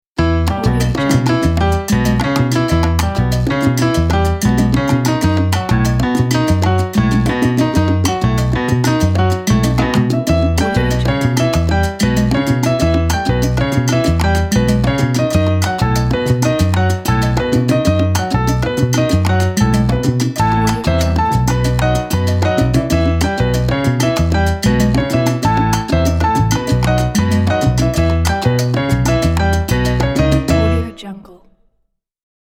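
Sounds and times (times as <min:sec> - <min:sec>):
mambo salsa music: 0:00.2 - 0:31.2.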